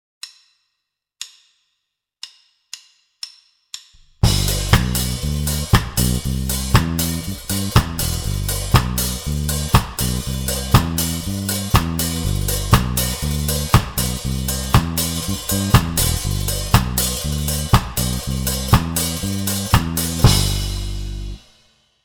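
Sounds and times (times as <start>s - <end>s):
ska music: 4.2s - 21.4s
reggae drum kit: 4.2s - 21.5s.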